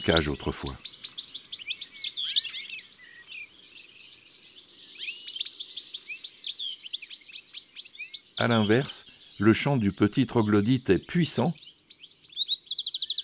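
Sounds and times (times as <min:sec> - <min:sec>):
speech: 0:00.0 - 0:00.9, 0:08.4 - 0:11.6
goldfinch chattering song: 0:00.0 - 0:02.8, 0:07.5 - 0:13.2.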